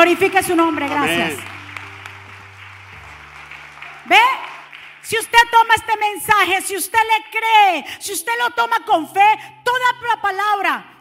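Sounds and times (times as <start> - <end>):
speech: 0.0 - 1.5, 4.1 - 4.5, 5.1 - 10.9
audience applause: 0.0 - 5.4.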